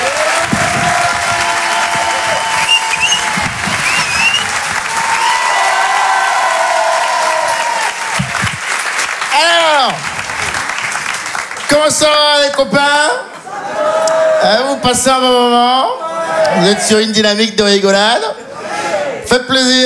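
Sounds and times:
large audience applauding: 0.0 - 12.7
cheering: 0.0 - 17.0
whistles: 1.5 - 5.7
speech: 11.9 - 13.2, 14.5 - 18.3, 19.3 - 19.8.

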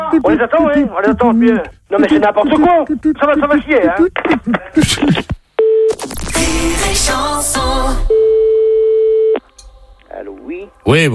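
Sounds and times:
speech: 0.1 - 5.3, 6.6 - 8.3, 10.8 - 11.1
telephone tone while a call is transferred: 5.6 - 6.2, 8.1 - 9.4.

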